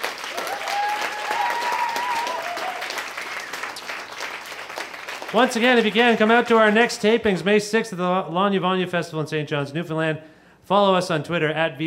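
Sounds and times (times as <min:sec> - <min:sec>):
audience applause: 0:00.0 - 0:06.9
speech: 0:05.3 - 0:11.8.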